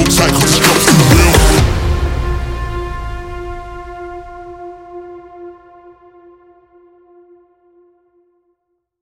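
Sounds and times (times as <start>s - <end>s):
construction kit full music mix: 0.0s - 7.2s.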